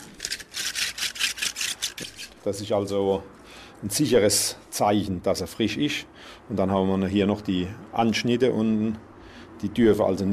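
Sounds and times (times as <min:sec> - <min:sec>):
fresh asparagus spears rubbed together: 0:00.0 - 0:02.5
speech: 0:02.4 - 0:10.3.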